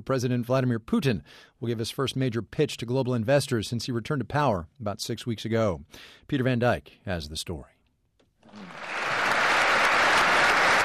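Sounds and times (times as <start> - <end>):
speech: 0.0 - 7.7
audience applause: 8.5 - 10.8.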